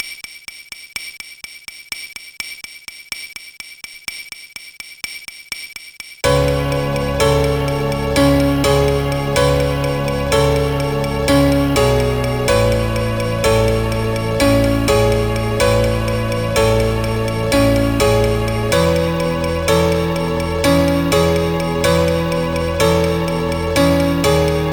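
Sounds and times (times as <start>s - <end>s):
piano tune: 6.2s - 24.7s.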